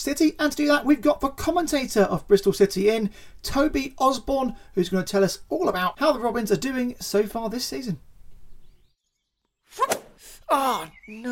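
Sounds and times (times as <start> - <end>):
speech: 0.0 - 8.1, 9.7 - 11.2
golf club swishing and striking a sliced golf shot: 9.8 - 10.2.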